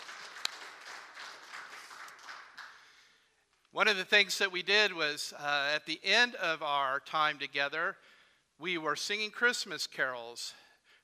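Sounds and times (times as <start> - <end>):
round of applause: 0.0 - 3.2
speech: 3.8 - 11.0.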